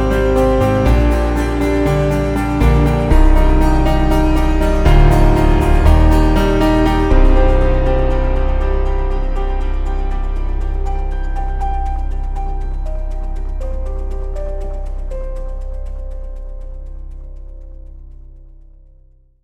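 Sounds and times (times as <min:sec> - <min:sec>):
piano: 0:00.0 - 0:19.2.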